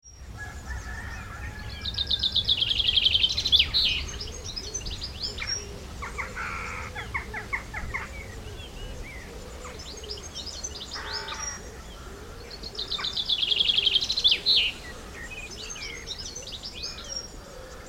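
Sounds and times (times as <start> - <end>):
countryside bird chorus: 0.0 - 17.8.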